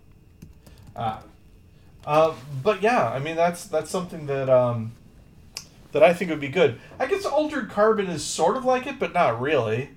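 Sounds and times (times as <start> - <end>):
keyboard typing while writing podcast show notes: 0.3 - 1.4
speech: 1.0 - 1.4, 2.0 - 5.0, 5.9 - 9.9.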